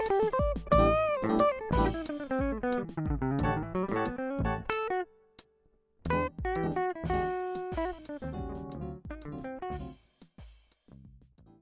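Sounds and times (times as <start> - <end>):
funky blues music: 0.0 - 5.1, 6.0 - 10.0.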